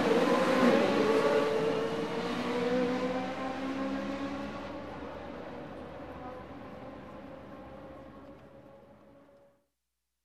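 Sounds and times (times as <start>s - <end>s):
Formula 1 racing cars: 0.0s - 6.7s.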